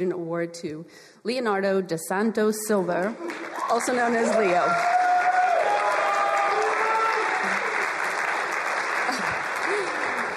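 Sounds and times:
speech: 0.0 - 5.0
audience applause: 3.2 - 10.3.

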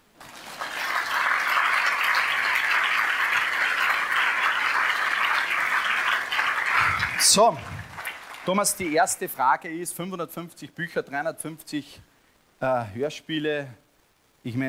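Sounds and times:
audience applause: 0.0 - 9.2
speech: 7.3 - 7.8, 8.5 - 13.8, 14.4 - 14.6.

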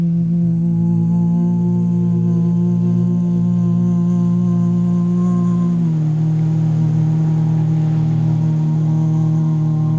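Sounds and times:
soft hiss: 0.0 - 9.9
sustained gong or singing bowl tone: 0.0 - 9.9.

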